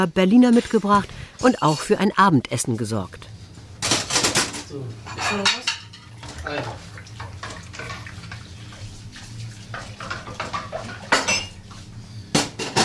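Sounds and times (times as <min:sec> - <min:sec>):
speech: 0:00.0 - 0:03.4, 0:04.7 - 0:05.6, 0:06.5 - 0:06.8
plates and cutlery clinking: 0:03.8 - 0:08.1, 0:09.7 - 0:11.6, 0:12.4 - 0:12.8
running water while washing dishes by hand: 0:06.1 - 0:11.9.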